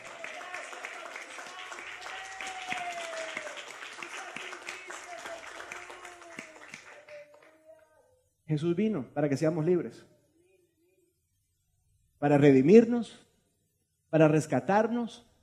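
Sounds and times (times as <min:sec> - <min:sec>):
audience applause: 0:00.0 - 0:07.6
speech: 0:08.5 - 0:10.1, 0:12.2 - 0:13.2, 0:14.1 - 0:15.3.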